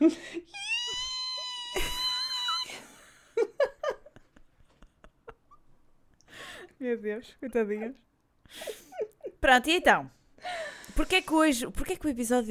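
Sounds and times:
speech: 0.0 - 0.4, 6.9 - 8.7, 9.4 - 10.2, 11.0 - 12.4
voice imitating a cockroach's scream: 0.6 - 2.8
breathy gasps and clicks: 10.4 - 11.4.

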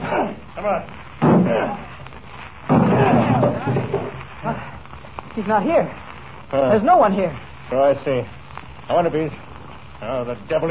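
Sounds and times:
speech: 0.6 - 1.8, 5.4 - 9.4, 10.0 - 10.7
door being broken down: 1.2 - 1.6, 2.7 - 4.2.

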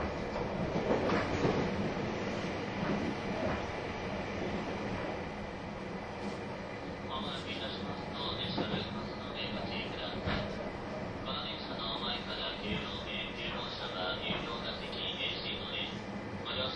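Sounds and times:
train running: 0.0 - 16.7.

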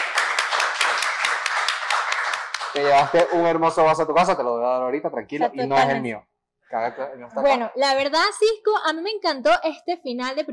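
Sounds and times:
audience applause: 0.0 - 3.6
speech: 2.8 - 10.5.

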